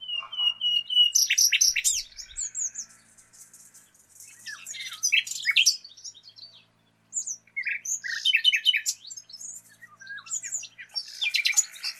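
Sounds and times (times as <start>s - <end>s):
Common nightingale Luscinia megarhynchos singing: 0.0s - 11.9s.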